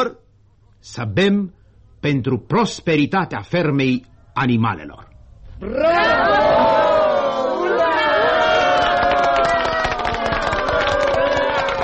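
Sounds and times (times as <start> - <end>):
speech: 0.8 - 6.7
enthusiastic cheering: 5.6 - 11.8
applause: 8.4 - 11.8.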